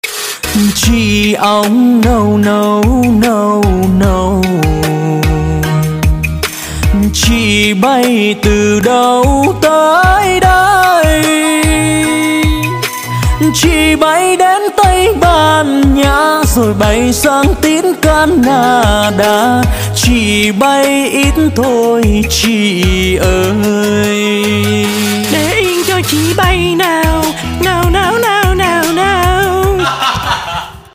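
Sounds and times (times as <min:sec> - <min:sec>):
opera singing: 0:00.6 - 0:05.7, 0:06.9 - 0:30.3
laughter: 0:29.6 - 0:30.9.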